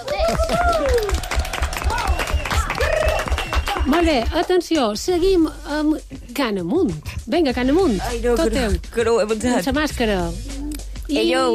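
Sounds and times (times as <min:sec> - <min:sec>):
audience applause: 0:00.0 - 0:04.3
speech: 0:00.3 - 0:01.3, 0:04.0 - 0:10.5, 0:11.1 - 0:11.5.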